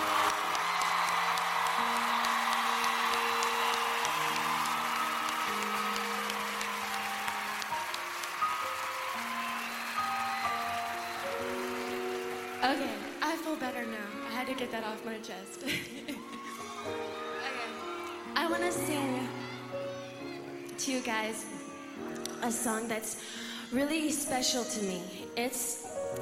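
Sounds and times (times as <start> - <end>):
audience applause: 0.0 - 14.2, 15.8 - 20.7
speech: 12.7 - 17.0, 18.5 - 19.4, 20.8 - 21.6, 22.4 - 26.2.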